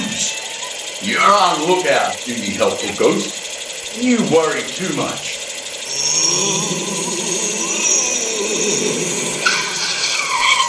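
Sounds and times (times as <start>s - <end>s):
roaring sports car engine: 0.0s - 10.6s
speech: 1.0s - 5.3s, 6.3s - 7.3s
sports car tires screeching in a skid on a highway: 6.0s - 10.6s.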